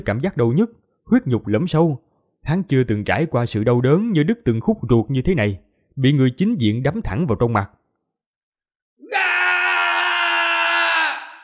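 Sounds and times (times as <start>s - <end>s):
speech: 0.0s - 7.8s
man roaring loudly in rage: 9.0s - 11.4s.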